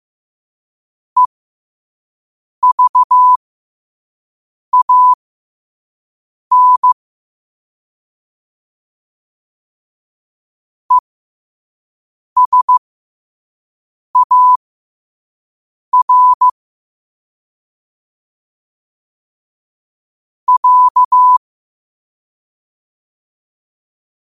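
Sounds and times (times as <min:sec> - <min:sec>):
morse code at 5 wpm: 0:02.6 - 0:03.4, 0:04.8 - 0:05.2, 0:06.5 - 0:07.0, 0:12.4 - 0:12.8, 0:14.2 - 0:14.6, 0:16.0 - 0:16.5, 0:20.5 - 0:21.4.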